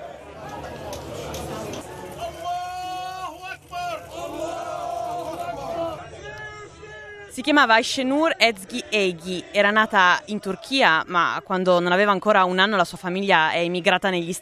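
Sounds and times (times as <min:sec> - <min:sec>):
crowd of mourners in a funeral procession in Nablus, West Bank: 0:00.0 - 0:12.1
speech: 0:07.4 - 0:14.4.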